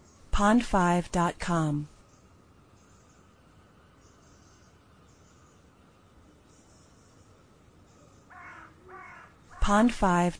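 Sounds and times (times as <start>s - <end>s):
speech: 0.4s - 1.9s, 9.7s - 10.3s
harsh bird caws: 8.3s - 9.7s.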